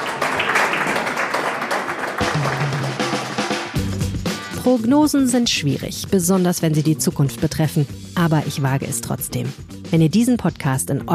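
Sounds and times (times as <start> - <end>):
applause: 0.0 - 3.8
speech: 4.7 - 11.1.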